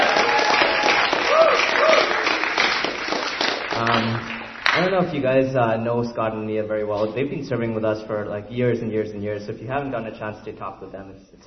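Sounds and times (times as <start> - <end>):
audience round of applause: 0.0 - 4.9
speech: 3.9 - 11.4.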